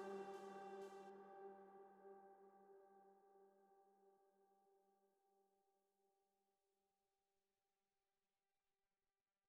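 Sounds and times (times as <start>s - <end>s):
deep house music: 0.0s - 1.6s.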